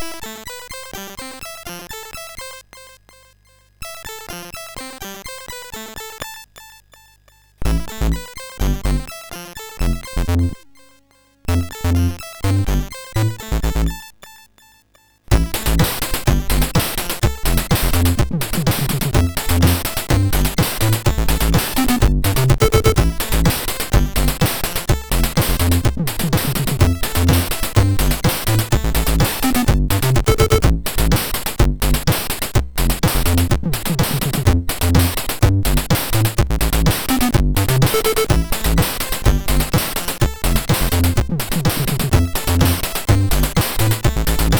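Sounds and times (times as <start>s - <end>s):
MOS6581R4 SID chip music: 7.6s - 10.7s, 11.5s - 14.4s, 15.3s - 44.5s.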